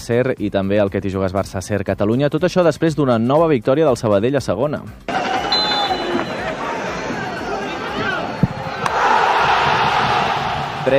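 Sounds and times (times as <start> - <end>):
speech: 0.0 - 5.1
stadium crowd erupting in euphoric cheers: 5.1 - 10.9.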